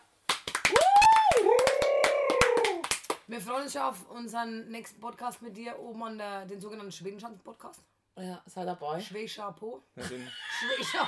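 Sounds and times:
small group of people clapping: 0.0 - 3.3
long rising and falling vocal cheer: 0.7 - 2.9
speech: 3.3 - 11.0
laughter: 10.0 - 11.0.

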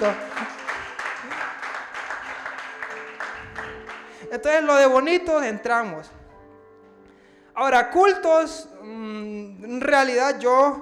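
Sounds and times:
speech: 0.0 - 0.3, 4.3 - 6.2, 7.6 - 10.7
audience applause: 0.0 - 4.3.

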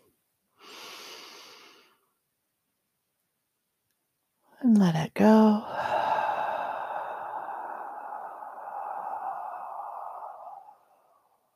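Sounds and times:
deep breath in: 0.6 - 2.0, 5.6 - 11.5
speech: 4.6 - 5.8.

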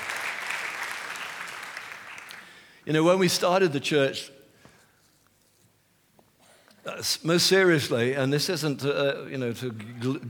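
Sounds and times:
audience clapping: 0.0 - 2.7
speech: 2.8 - 4.4, 7.0 - 10.2.

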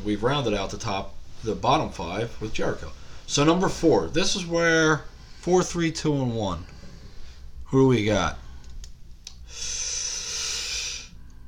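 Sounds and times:
speech: 0.0 - 6.8, 7.7 - 8.4
deep breath drawn to stall for time: 6.6 - 7.6, 9.4 - 11.4
short sniffs: 9.5 - 11.2.

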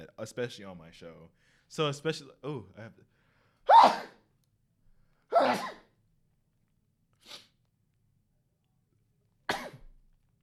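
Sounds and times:
speech: 0.1 - 4.2, 5.4 - 5.8
person sneezing: 3.7 - 4.2, 5.3 - 6.0, 7.2 - 7.6.

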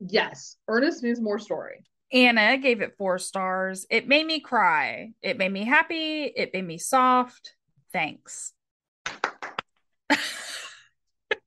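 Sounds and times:
speech: 0.1 - 9.4, 10.1 - 10.4
hand clap: 9.0 - 9.8.

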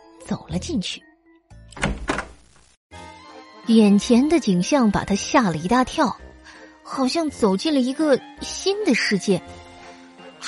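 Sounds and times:
speech: 0.3 - 1.1, 3.7 - 6.2, 6.9 - 9.6
wooden door being opened: 1.7 - 2.4.

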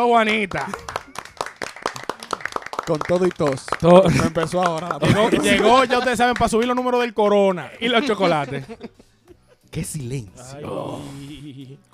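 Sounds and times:
speech: 0.0 - 0.9, 2.9 - 9.1, 9.8 - 11.9
small round of applause: 0.0 - 7.1
laughter: 3.8 - 6.7, 7.8 - 9.7.

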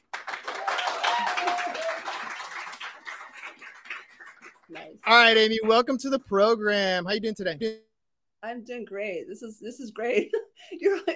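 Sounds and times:
class clapping: 0.0 - 6.1
faint whistle or cheer: 0.5 - 2.2
speech: 4.7 - 11.1.

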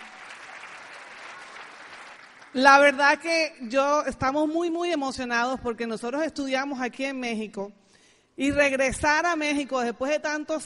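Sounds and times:
audience applause: 0.0 - 2.6
speech: 2.5 - 7.8, 8.4 - 10.6.

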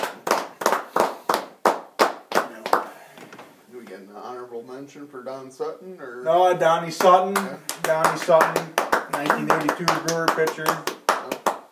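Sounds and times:
round of applause: 0.0 - 3.0, 7.0 - 11.7
speech: 4.0 - 11.0.

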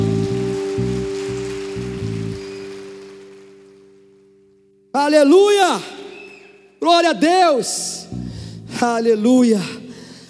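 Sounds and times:
audience applauding: 0.0 - 4.3
low sustained musical chords pulsing rhythmically: 0.0 - 4.9
speech: 5.1 - 6.0, 6.8 - 8.2, 8.8 - 9.8.

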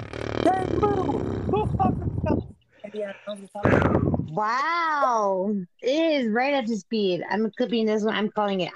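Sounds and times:
very long fart: 0.0 - 2.4
speech: 3.0 - 8.7.

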